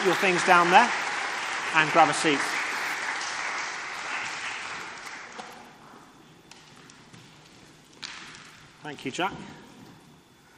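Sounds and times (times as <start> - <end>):
speech: 0.0 - 1.0, 1.7 - 2.6, 8.9 - 9.6
crowd applauding: 0.0 - 5.5.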